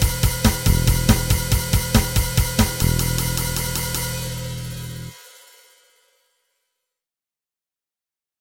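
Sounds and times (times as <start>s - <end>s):
backing music: 0.0s - 5.4s.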